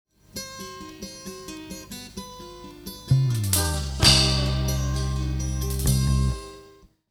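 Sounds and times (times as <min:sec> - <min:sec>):
lofi music: 0:03.1 - 0:06.4.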